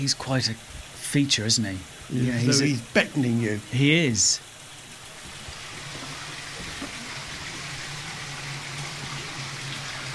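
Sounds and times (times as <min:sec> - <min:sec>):
speech: 0:00.0 - 0:04.5
naturally spring-fed water constantly flowing into the River Stour: 0:00.0 - 0:10.1.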